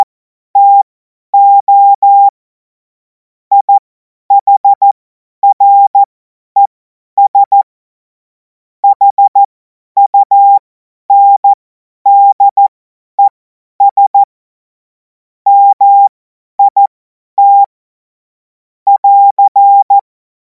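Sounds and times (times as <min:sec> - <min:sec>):
CW Morse code beeps: 0:00.0 - 0:00.8, 0:01.4 - 0:02.3, 0:03.5 - 0:03.7, 0:04.4 - 0:07.6, 0:08.8 - 0:12.6, 0:13.2 - 0:14.3, 0:15.5 - 0:17.7, 0:18.9 - 0:20.0.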